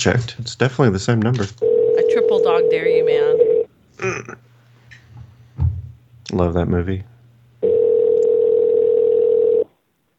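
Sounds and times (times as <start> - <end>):
speech: 0.0 - 4.4, 6.3 - 7.7
telephone dial tone while calling: 1.6 - 3.7, 7.6 - 9.8.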